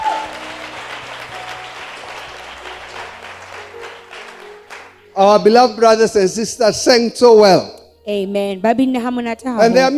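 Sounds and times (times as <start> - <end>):
audience applause: 0.0 - 5.2
speech: 5.2 - 9.9.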